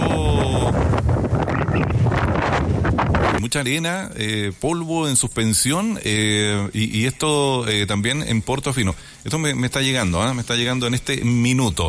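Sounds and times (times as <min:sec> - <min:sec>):
strong wind blowing at the pools beach area in Chañaral: 0:00.0 - 0:03.6
speech: 0:03.5 - 0:11.8.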